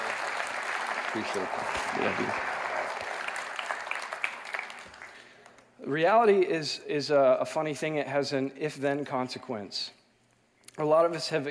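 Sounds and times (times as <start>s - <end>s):
audience applause: 0.0s - 5.5s
speech: 1.2s - 2.5s, 5.8s - 10.0s, 10.8s - 11.4s.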